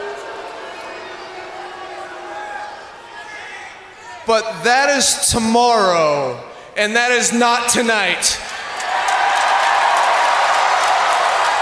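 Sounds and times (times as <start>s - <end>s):
wrestling crowd cheering and applauding: 0.0s - 3.0s, 8.4s - 11.6s
speech: 4.2s - 8.5s.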